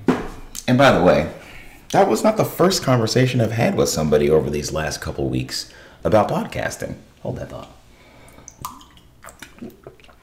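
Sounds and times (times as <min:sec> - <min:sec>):
speech: 0:00.7 - 0:07.8, 0:09.6 - 0:09.9
person sipping water: 0:08.1 - 0:10.2.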